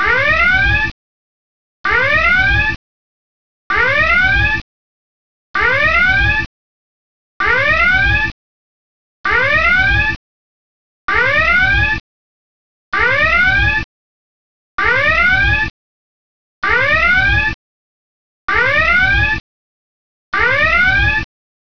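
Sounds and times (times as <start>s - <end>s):
red alert alarm: 0.0s - 1.0s, 1.8s - 2.8s, 3.7s - 4.6s, 5.6s - 6.5s, 7.4s - 8.4s, 9.2s - 10.2s, 11.1s - 12.0s, 12.9s - 13.9s, 14.8s - 15.7s, 16.6s - 17.6s, 18.5s - 19.4s, 20.4s - 21.3s.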